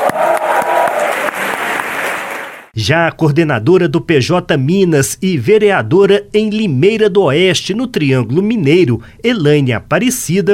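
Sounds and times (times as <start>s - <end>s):
crowd of young people shouting and cheering: 0.0s - 2.6s
clapping: 0.0s - 2.7s
speech: 2.8s - 10.5s.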